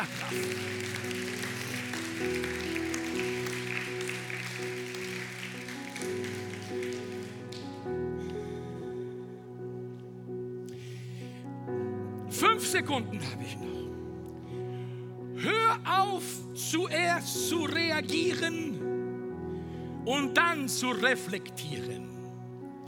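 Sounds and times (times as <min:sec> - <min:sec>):
audience applauding: 0:00.0 - 0:08.0
sustained keyboard chords: 0:00.0 - 0:22.8
speech: 0:00.3 - 0:00.8, 0:12.6 - 0:13.9, 0:16.0 - 0:18.8, 0:20.1 - 0:22.2.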